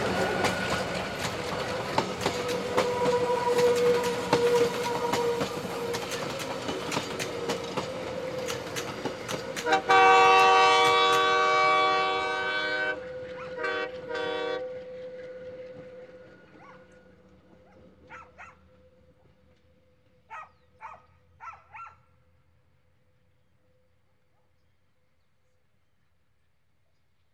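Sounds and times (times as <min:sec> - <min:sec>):
train whistle: 0:00.0 - 0:17.2
passenger train passing on the Altiplano: 0:00.0 - 0:24.2.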